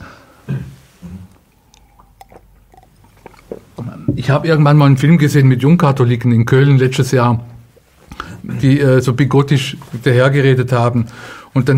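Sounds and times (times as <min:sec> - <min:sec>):
sip of water being drunk: 0:00.7 - 0:04.1
speech: 0:04.2 - 0:07.5, 0:08.5 - 0:11.7.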